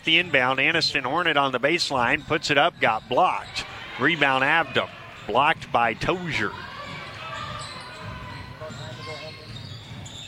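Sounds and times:
speech: 0.0s - 6.7s
voices and commentary: 0.0s - 10.1s
basketball dribbled on the court during a game: 6.5s - 10.2s.

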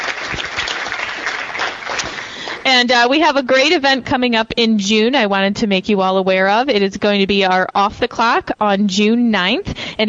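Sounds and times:
audience applause welcoming new chamber members: 0.0s - 2.6s
speech: 2.7s - 10.0s.

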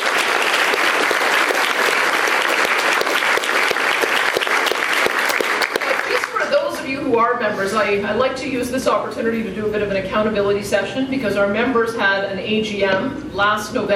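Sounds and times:
audience applause: 0.0s - 6.5s
speech: 7.4s - 13.9s.

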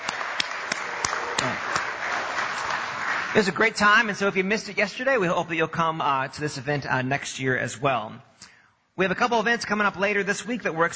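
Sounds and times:
audience hand clapping: 0.0s - 4.1s
speech: 3.4s - 8.4s, 9.0s - 10.9s.

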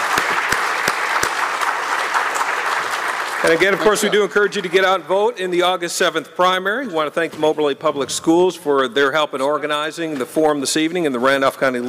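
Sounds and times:
audience applause: 0.0s - 5.1s
speech: 3.4s - 11.8s.

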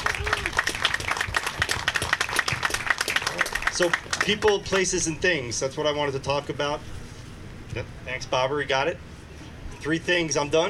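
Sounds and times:
audience applause: 0.0s - 4.9s
speech: 3.8s - 7.0s, 7.7s - 9.1s, 9.8s - 10.6s.

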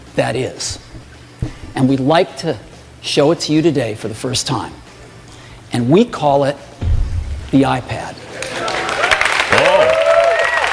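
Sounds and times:
speech: 0.2s - 1.0s, 1.8s - 4.8s, 5.7s - 6.7s, 7.5s - 8.2s
raucous audience applause and cheering: 8.2s - 10.7s.

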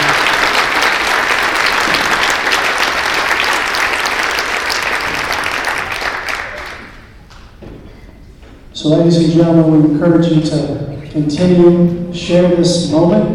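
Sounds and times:
audience applause: 0.0s - 7.1s
speech: 8.8s - 13.3s.

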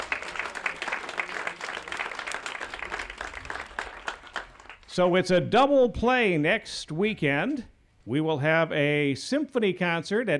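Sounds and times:
audience applause at outdoor park concert: 0.0s - 4.9s
speech: 5.0s - 10.3s.

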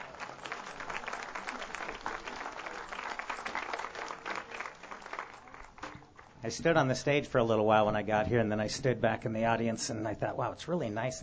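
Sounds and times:
audience applause for percussionists: 0.0s - 6.3s
speech: 6.4s - 11.2s.

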